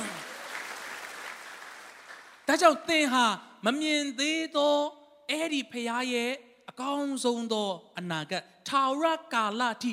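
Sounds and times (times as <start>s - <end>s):
church congregation clapping in praise: 0.0s - 2.5s
speech: 2.5s - 9.9s.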